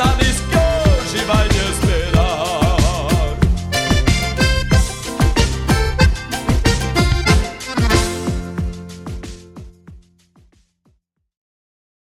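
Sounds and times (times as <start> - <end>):
batidão gaúcho music: 0.6 - 9.9.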